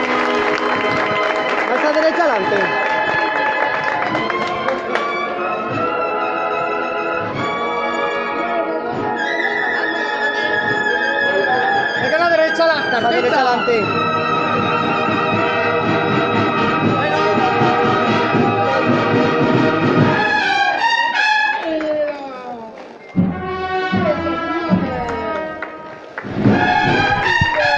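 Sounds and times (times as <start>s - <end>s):
cornet and drum band playing a march: 0.0s - 21.6s, 23.2s - 27.7s
crowd murmur: 0.0s - 27.7s.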